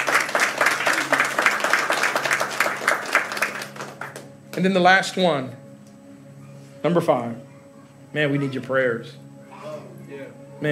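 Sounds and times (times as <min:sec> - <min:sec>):
audience clapping: 0:00.0 - 0:04.7
speech: 0:04.6 - 0:05.6, 0:06.8 - 0:07.5, 0:08.1 - 0:09.2.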